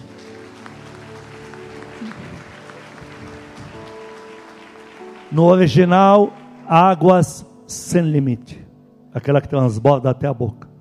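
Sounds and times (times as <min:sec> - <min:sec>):
crowd clapping: 0:00.0 - 0:07.5
sustained low musical tones: 0:00.0 - 0:10.7
speech: 0:05.3 - 0:08.6, 0:09.2 - 0:10.6.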